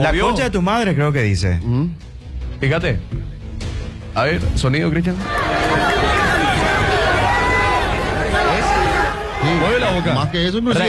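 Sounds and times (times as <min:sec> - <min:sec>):
speech: 0:00.0 - 0:03.3, 0:04.2 - 0:06.1, 0:09.4 - 0:10.8
large stadium crowd shouting: 0:05.2 - 0:10.8.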